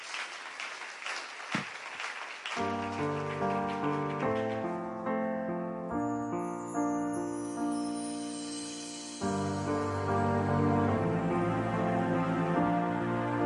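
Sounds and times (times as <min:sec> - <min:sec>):
audience clapping hands: 0:00.0 - 0:05.1
sustained instrumental music: 0:02.6 - 0:13.4.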